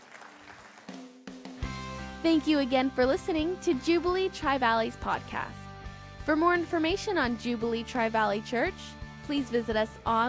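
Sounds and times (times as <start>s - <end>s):
audience hand clapping: 0.0s - 1.6s
speech: 2.2s - 5.6s, 6.3s - 10.2s.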